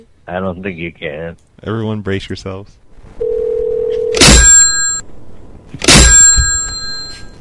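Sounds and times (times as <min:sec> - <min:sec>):
speech: 0:00.0 - 0:03.3
phone slammed down loudly: 0:04.2 - 0:04.8, 0:05.8 - 0:07.2.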